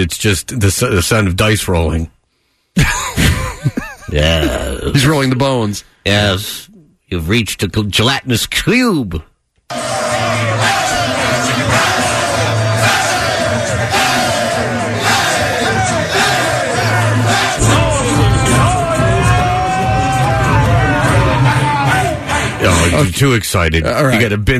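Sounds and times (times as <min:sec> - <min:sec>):
speech: 0:00.0 - 0:02.2, 0:02.8 - 0:10.8, 0:23.0 - 0:24.5
chanting voices: 0:09.7 - 0:23.0
locker room crowd of men cheering, yelling and whooping: 0:09.7 - 0:23.0.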